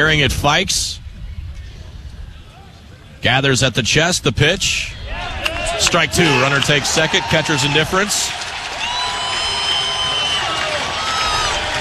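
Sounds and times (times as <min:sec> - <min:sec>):
speech: 0:00.0 - 0:01.0, 0:03.2 - 0:08.4
packed stadium crowd roaring and cheering: 0:04.9 - 0:11.7
shrill whistles and whoops: 0:08.7 - 0:11.7.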